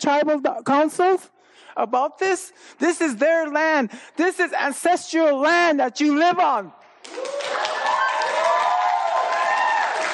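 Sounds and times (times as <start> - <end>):
speech: 0.0 - 7.4
crowd clapping: 7.0 - 10.1.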